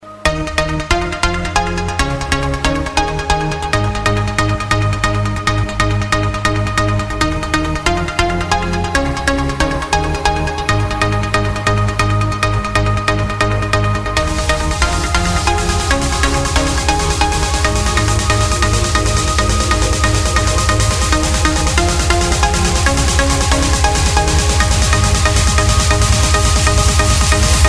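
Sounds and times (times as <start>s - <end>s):
trance music: 0.0s - 27.6s.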